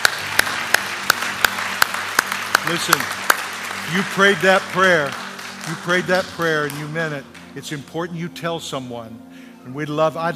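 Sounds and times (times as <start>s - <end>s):
crowd noise: 0.0s - 6.7s
audience rhythmic clapping: 0.0s - 8.1s
speech: 2.7s - 3.2s, 3.9s - 10.3s.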